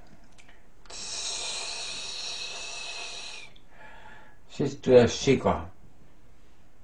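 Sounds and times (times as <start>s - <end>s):
person imitating a snake's hiss: 0.9s - 3.6s
speech: 4.6s - 5.8s.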